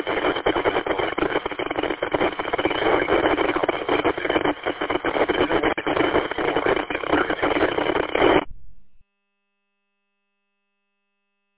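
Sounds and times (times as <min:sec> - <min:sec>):
radio static crackling: 0:00.0 - 0:09.0.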